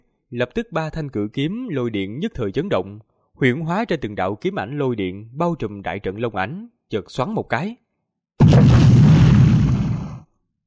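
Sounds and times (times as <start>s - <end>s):
speech: 0.3s - 7.8s
earth-shaking explosion sound effect: 8.4s - 10.3s.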